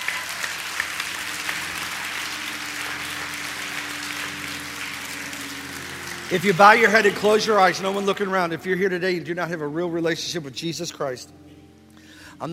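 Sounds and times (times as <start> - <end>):
audience clapping in praise: 0.0 - 8.8
speech: 6.3 - 11.4.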